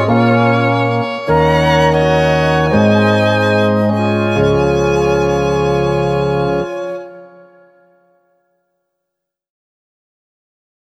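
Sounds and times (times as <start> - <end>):
instrumental music: 0.0 - 8.6.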